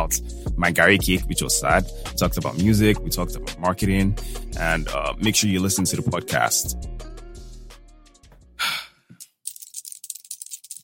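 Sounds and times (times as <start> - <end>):
speech: 0.1 - 7.2
rings clinking: 9.2 - 10.8.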